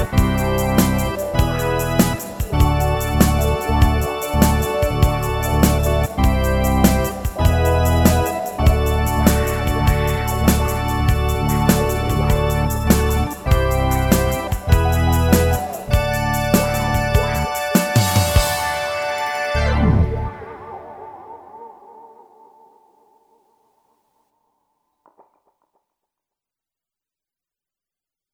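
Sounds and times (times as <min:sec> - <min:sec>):
instrumental music: 0:00.0 - 0:20.9.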